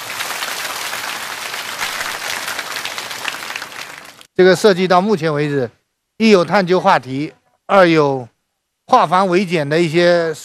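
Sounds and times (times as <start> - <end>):
classroom applause: 0.0 - 4.3
speech: 4.4 - 8.3, 8.9 - 10.4.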